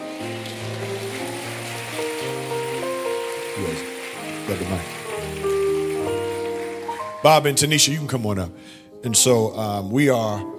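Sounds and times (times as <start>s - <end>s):
audience applause: 0.0s - 7.9s
speech: 3.6s - 3.9s, 4.5s - 5.0s, 7.2s - 10.5s.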